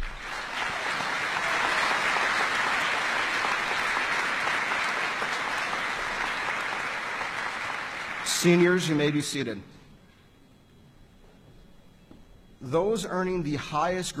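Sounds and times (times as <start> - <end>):
large crowd applauding: 0.0 - 9.5
speech: 8.4 - 9.7, 12.7 - 14.1.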